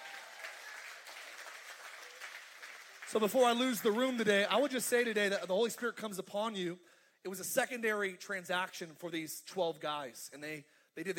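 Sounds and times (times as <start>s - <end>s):
audience applauding: 0.0s - 4.3s
speech: 3.1s - 11.1s.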